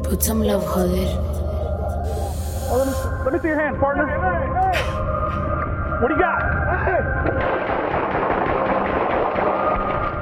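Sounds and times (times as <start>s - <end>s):
speech: 0.1s - 1.4s, 2.0s - 5.1s, 6.0s - 7.7s
gunshots: 7.4s - 10.1s.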